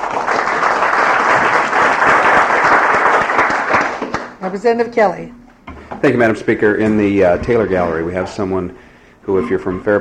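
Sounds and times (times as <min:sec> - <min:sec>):
applause in a legislative chamber welcoming gallery guests: 0:00.0 - 0:04.4
speech: 0:04.4 - 0:05.4, 0:06.0 - 0:09.9.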